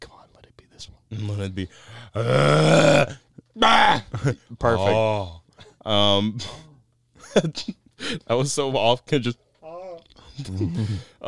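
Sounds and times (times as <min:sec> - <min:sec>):
speech: 0:00.8 - 0:06.6, 0:07.3 - 0:09.4, 0:10.4 - 0:11.2
long deep bassy burp: 0:02.2 - 0:04.0.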